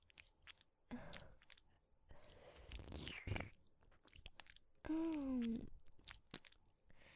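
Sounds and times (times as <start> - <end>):
ASMR tongue licking deep inside an ear: 0.0 - 7.1
person humming: 4.9 - 5.7.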